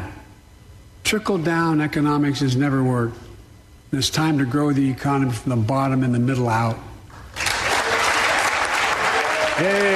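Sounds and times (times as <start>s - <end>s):
speech: 1.1s - 3.2s, 3.9s - 6.9s, 9.6s - 9.9s
audience applause: 7.4s - 9.9s.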